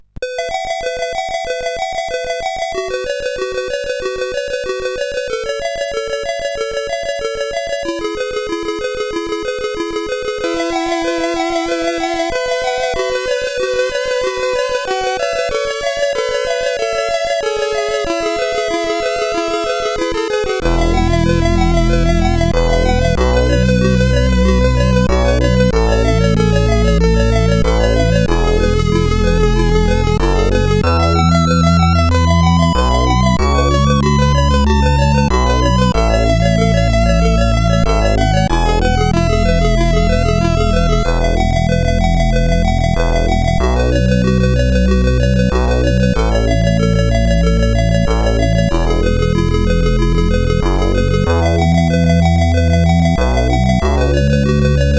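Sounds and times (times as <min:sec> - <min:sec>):
bells on a SID CSG8580R5 chip: 0:00.2 - 0:54.9.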